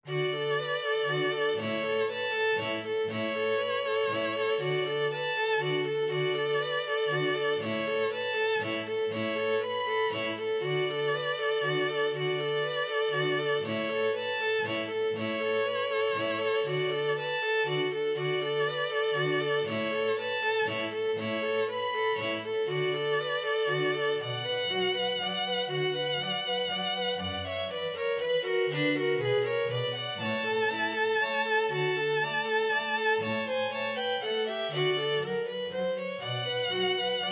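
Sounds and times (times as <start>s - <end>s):
dance in D for two violins and bass: 0.0s - 37.3s.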